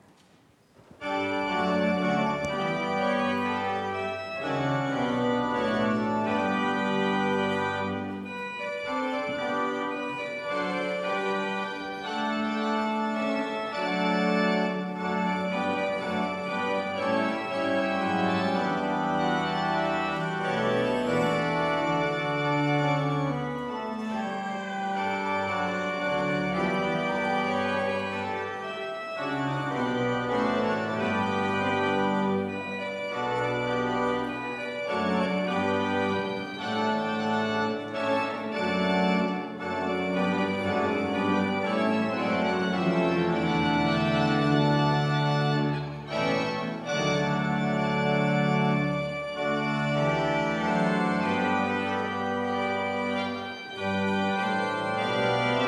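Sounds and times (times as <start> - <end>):
organ postlude: 0.0 - 55.6.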